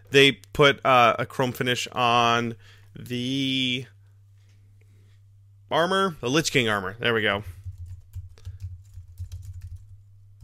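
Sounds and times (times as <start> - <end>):
low constant hum: 0.0 - 10.4
speech: 0.1 - 4.0, 5.7 - 7.6
typing on a computer keyboard: 7.6 - 10.4.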